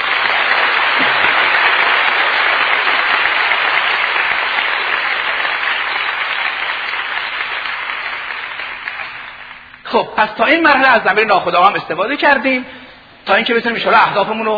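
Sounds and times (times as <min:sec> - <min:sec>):
audience clapping hands: 0:00.0 - 0:09.9
speech: 0:10.0 - 0:14.5.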